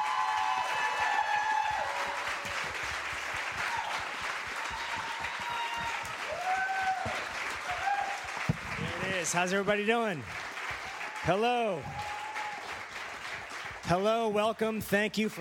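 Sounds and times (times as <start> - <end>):
audience cheers and whoops: 0.0 - 8.5, 10.8 - 12.8
audience clapping as actor Brian Austin Green comes on stage: 0.0 - 14.8
speech: 9.2 - 10.4, 11.2 - 12.1, 13.9 - 15.3.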